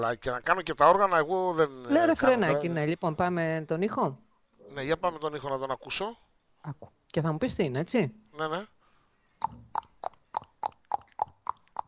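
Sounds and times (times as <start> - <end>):
speech: 0.0 - 8.8, 9.4 - 9.7
horse hooves clopping: 9.4 - 11.8.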